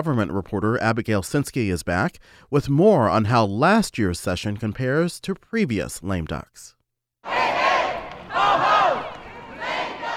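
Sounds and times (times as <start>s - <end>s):
speech: 0.0s - 6.8s
protesters chanting in the State House: 7.2s - 10.1s.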